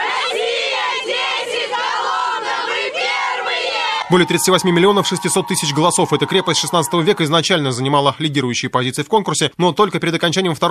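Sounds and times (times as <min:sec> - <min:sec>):
crowd cheering in celebration: 0:00.0 - 0:08.1
speech: 0:04.1 - 0:10.7.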